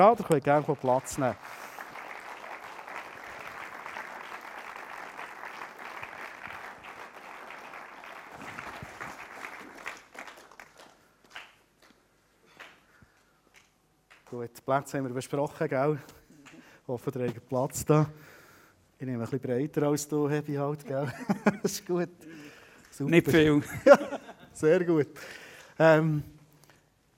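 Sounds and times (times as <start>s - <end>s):
speech: 0.0s - 1.7s, 14.4s - 16.2s, 16.9s - 18.4s, 19.0s - 26.4s
warm audience applause: 0.0s - 11.6s
laughter: 20.9s - 21.9s, 23.2s - 24.6s.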